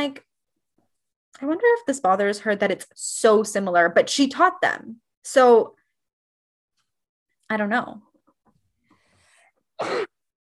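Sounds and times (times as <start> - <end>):
speech: 0.0 - 0.2, 1.4 - 5.8, 7.5 - 8.1, 9.8 - 10.1
sneeze: 9.8 - 10.2.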